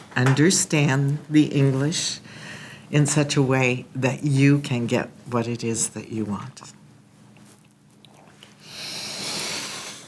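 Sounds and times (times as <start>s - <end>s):
speech: 0.2s - 6.8s
slow audible breathing: 8.6s - 10.0s.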